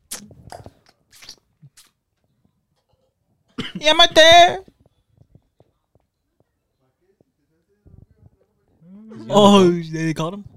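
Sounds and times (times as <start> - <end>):
person sucking on fingers: 0.0 - 2.0
speech: 3.8 - 4.7, 9.3 - 10.5.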